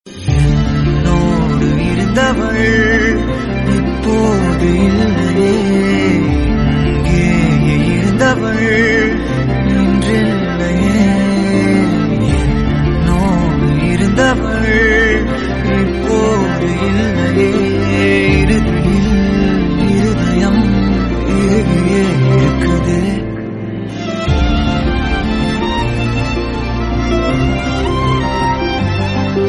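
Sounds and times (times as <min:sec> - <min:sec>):
Tamil song: 0:00.1 - 0:29.4.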